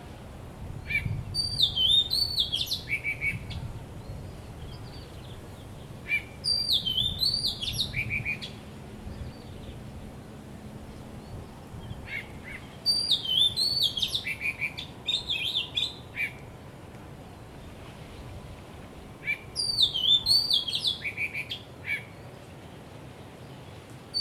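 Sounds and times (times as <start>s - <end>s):
bird song: 0.8s - 10.2s, 10.9s - 16.4s, 19.2s - 22.3s, 23.4s - 24.1s.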